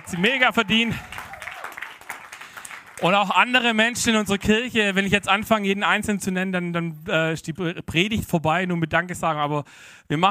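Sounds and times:
faint cheering voices: 0.0 - 2.1
crowd applauding: 0.0 - 5.2
speech: 0.1 - 1.1, 3.0 - 10.2.

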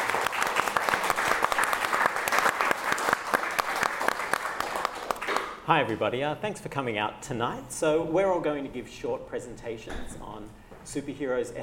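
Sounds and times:
audience applause: 0.0 - 5.6
speech: 5.7 - 11.6.

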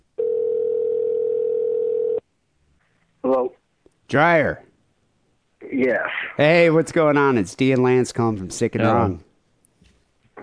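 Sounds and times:
telephone dial tone: 0.2 - 2.2
speech: 4.1 - 4.6, 5.8 - 9.3.

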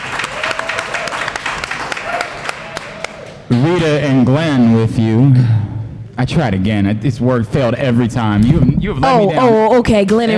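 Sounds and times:
studio audience applauding and cheering: 0.0 - 3.6
speech: 3.5 - 5.6, 6.2 - 10.3.

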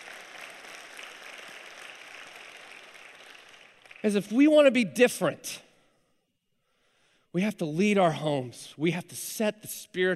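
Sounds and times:
crowd clapping: 0.0 - 4.4
speech: 4.0 - 5.7, 7.4 - 10.1.

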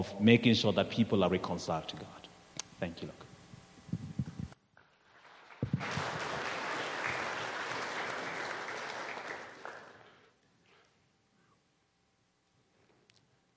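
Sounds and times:
speech: 0.0 - 3.3
audience clapping: 4.9 - 10.3.

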